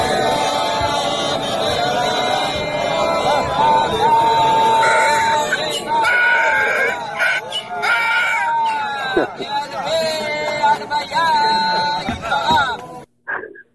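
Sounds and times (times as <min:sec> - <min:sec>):
laughter: 0:00.0 - 0:13.5
donkey braying: 0:04.5 - 0:09.3.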